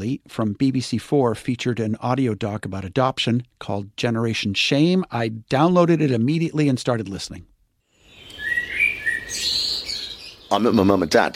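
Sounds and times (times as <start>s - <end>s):
speech: 0.0s - 7.5s, 10.5s - 11.3s
wild birds chirping at a garden feeder: 7.9s - 11.3s.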